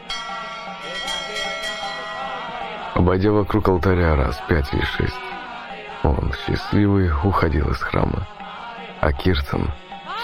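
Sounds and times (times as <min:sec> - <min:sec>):
temple bell struck forcefully: 0:00.0 - 0:02.6
speech: 0:03.0 - 0:05.3, 0:06.0 - 0:08.4, 0:09.0 - 0:10.2.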